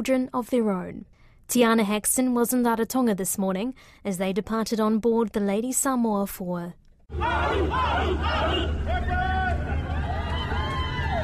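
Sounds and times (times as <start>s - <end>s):
speech: 0.0s - 9.2s
crowd calling and shouting at wharf farewell: 7.1s - 11.2s.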